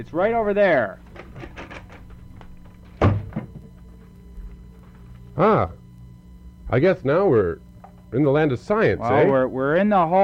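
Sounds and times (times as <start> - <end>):
speech: 0.0 - 1.1, 5.4 - 5.8, 6.7 - 10.2
low hum: 0.0 - 10.2
door banging shut: 2.7 - 3.7.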